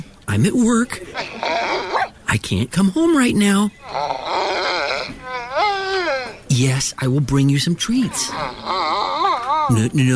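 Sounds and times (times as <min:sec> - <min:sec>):
speech: 0:00.0 - 0:04.3, 0:06.6 - 0:08.8, 0:09.7 - 0:10.1
dog whining and yelping: 0:01.1 - 0:02.2, 0:03.8 - 0:06.5, 0:08.3 - 0:09.8.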